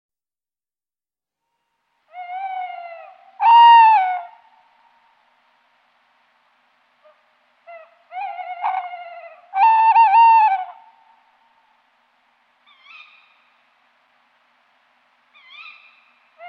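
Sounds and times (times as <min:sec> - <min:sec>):
Tawny owl giving short harmonic calls: 0:02.1 - 0:04.6, 0:07.0 - 0:11.2, 0:12.6 - 0:13.6, 0:15.3 - 0:16.4.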